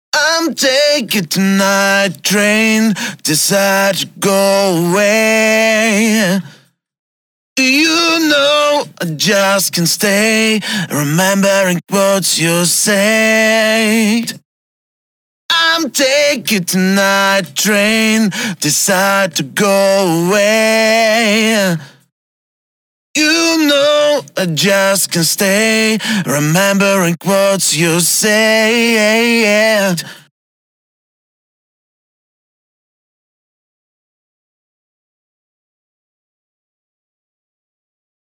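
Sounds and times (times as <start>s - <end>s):
a cappella singing: 0.2s - 6.6s, 7.6s - 14.4s, 15.5s - 22.0s, 23.2s - 30.3s.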